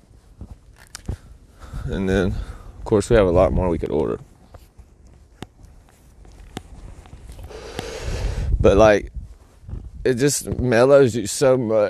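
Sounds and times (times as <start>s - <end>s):
footsteps of someone out on a walk: 0.0s - 10.8s
speech: 1.9s - 4.3s, 8.6s - 9.2s, 10.0s - 11.8s.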